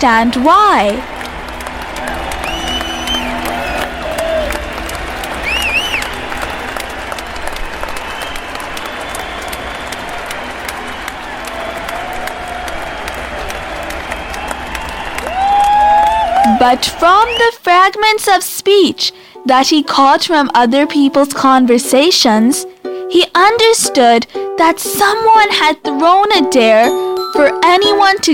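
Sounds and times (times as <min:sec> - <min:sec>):
speech: 0:00.0 - 0:01.2, 0:16.6 - 0:28.3
crowd yelling excitedly: 0:00.2 - 0:17.5.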